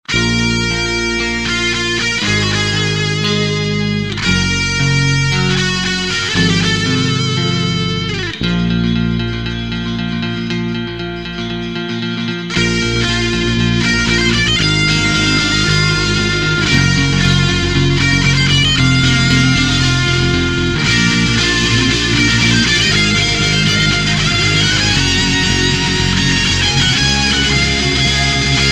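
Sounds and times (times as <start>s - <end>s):
electric guitar: 0.0s - 28.6s.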